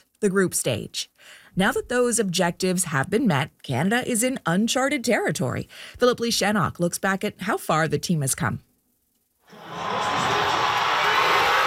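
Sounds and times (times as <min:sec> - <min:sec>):
speech: 0:00.2 - 0:08.7
watch party crowd cheering in Toronto: 0:09.5 - 0:11.6.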